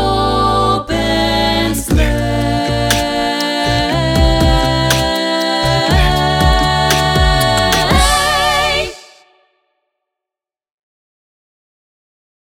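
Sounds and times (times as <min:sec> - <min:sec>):
Christmas song backing track with vocals: 0:00.0 - 0:09.4.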